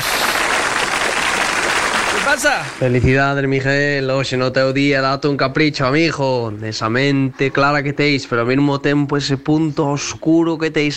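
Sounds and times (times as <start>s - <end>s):
applause: 0.0s - 2.8s
speech: 2.3s - 10.9s.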